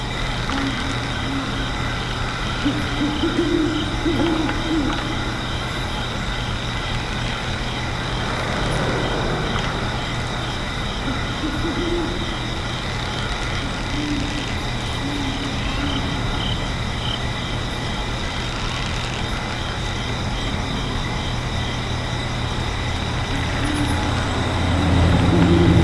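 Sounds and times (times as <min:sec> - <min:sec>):
smuggler's den ambience: 0:00.0 - 0:25.8.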